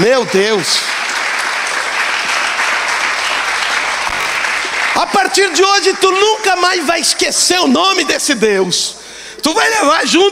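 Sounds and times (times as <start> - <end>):
speech: 0.0 - 0.9, 5.0 - 10.2
large crowd applause: 0.0 - 6.6.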